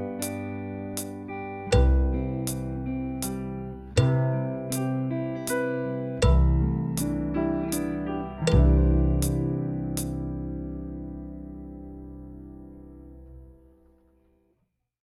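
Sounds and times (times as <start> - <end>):
drum kit: 0.0 - 10.9.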